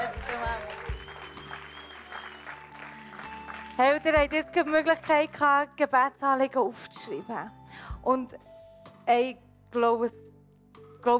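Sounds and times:
audience applause: 0:00.0 - 0:04.0
speech: 0:03.8 - 0:08.5, 0:09.1 - 0:10.3.

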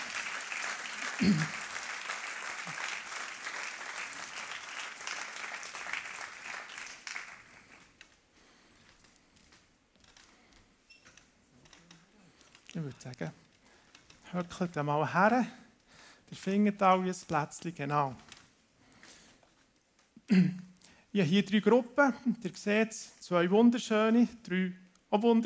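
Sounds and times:
audience applause: 0:00.0 - 0:08.0
speech: 0:01.2 - 0:01.6, 0:13.0 - 0:13.4, 0:14.3 - 0:15.6, 0:16.3 - 0:18.2, 0:20.3 - 0:20.6, 0:21.2 - 0:25.4.

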